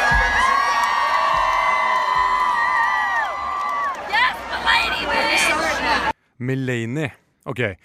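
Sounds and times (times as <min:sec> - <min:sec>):
whoops and screams: 0:00.0 - 0:04.0
audience cheering and shouting in a hall: 0:00.0 - 0:06.1
speech: 0:06.4 - 0:07.8.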